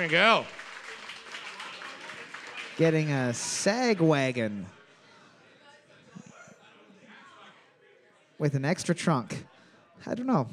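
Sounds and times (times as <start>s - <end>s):
speech: 0.0s - 0.6s, 2.8s - 4.8s, 8.4s - 10.5s
audience applause: 0.0s - 4.7s
crowd noise: 0.0s - 10.5s.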